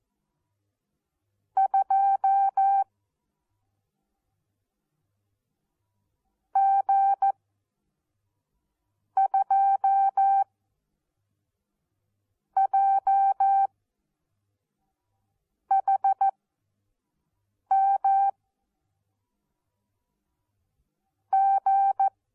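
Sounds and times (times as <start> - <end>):
morse code beeps: 1.6 - 2.9, 9.2 - 10.5, 12.6 - 13.7, 15.7 - 16.3, 17.7 - 18.3, 21.3 - 22.1.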